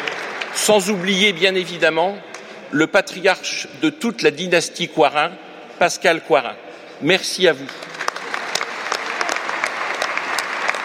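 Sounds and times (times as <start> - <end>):
audience applause: 0.0 - 1.2, 7.7 - 10.8
speech: 0.6 - 7.9.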